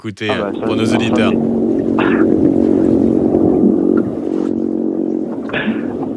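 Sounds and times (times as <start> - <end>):
speech: 0.0 - 2.8
fish grunting underwater: 0.3 - 6.1.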